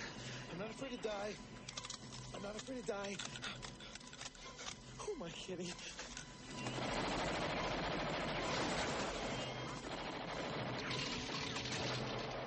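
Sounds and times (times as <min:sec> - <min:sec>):
speech: 0:00.5 - 0:01.7, 0:02.3 - 0:03.7, 0:05.0 - 0:07.0
rapid automatic gunfire in a movie scene: 0:06.5 - 0:12.4.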